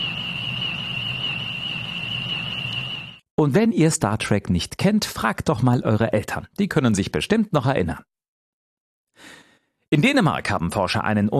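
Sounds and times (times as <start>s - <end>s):
Madagascar tree frog giving a sustained high-pitched whine: 0.0s - 3.2s
speech: 3.4s - 8.1s, 9.2s - 11.3s.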